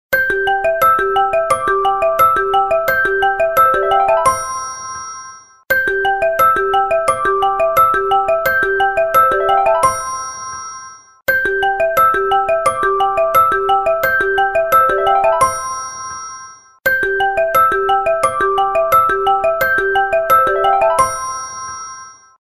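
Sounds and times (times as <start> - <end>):
ringtone: 0.1 - 22.4.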